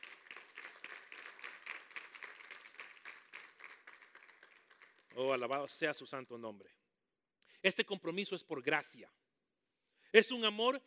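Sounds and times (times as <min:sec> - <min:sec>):
audience clapping hands: 0:00.0 - 0:06.0
speech: 0:05.2 - 0:06.8, 0:07.6 - 0:09.2, 0:10.1 - 0:10.8.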